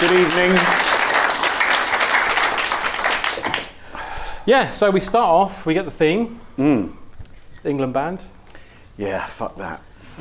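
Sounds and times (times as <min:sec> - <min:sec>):
speech: 0:00.0 - 0:00.8, 0:04.5 - 0:07.0, 0:07.6 - 0:08.4, 0:09.0 - 0:10.2
audience applause: 0:00.0 - 0:03.8.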